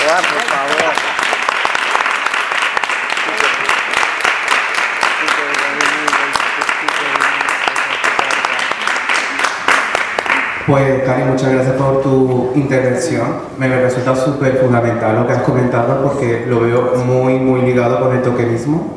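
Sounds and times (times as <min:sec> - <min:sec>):
audience applause after a Spanish-language talk: 0:00.0 - 0:10.6
speech: 0:10.7 - 0:18.9.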